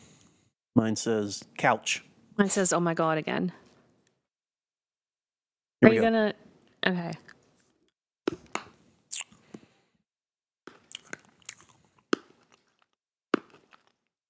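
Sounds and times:
speech: 0.8 - 3.6, 5.8 - 7.3
chewing a watermelon bubblegum sweet: 8.5 - 9.6, 10.7 - 14.1.

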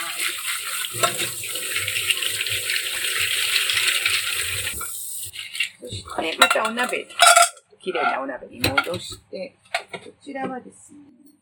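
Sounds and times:
tap water running over shellfish: 0.0 - 7.5
speech: 0.9 - 1.9, 6.2 - 9.6, 10.2 - 11.1
shellfish shells clattering in a colander: 6.4 - 7.6.

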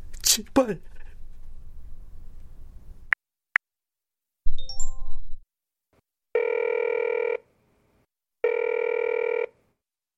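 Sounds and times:
speech: 0.4 - 1.0
phone ringing on an unanswered call: 6.4 - 7.4, 8.4 - 9.6.

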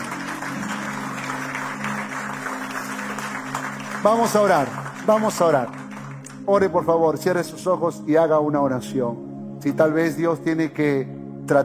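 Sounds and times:
audience applauding: 0.0 - 6.7
speech: 4.0 - 5.8, 6.5 - 11.6.

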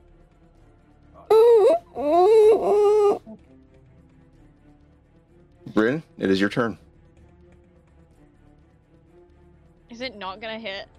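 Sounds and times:
creature whimpering: 1.3 - 3.4
speech: 5.8 - 6.8, 10.3 - 10.9.

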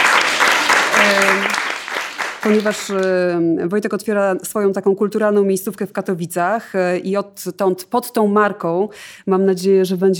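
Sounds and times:
applause: 0.0 - 3.2
speech: 1.1 - 1.5, 2.4 - 10.1.

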